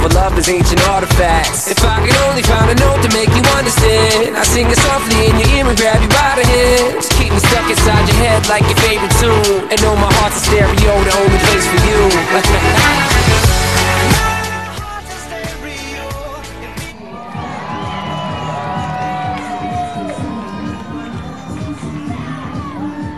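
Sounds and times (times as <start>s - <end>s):
speech: 0.2s - 14.3s
baseball fans murmuring in the stadium after the game: 16.9s - 23.1s
baseball fans whooping and shouting in the stadium: 16.9s - 23.1s.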